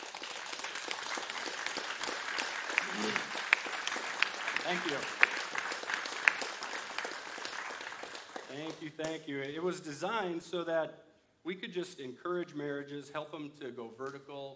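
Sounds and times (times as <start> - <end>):
audience applause: 0.0 - 8.9
speech: 4.7 - 5.2, 8.6 - 14.5.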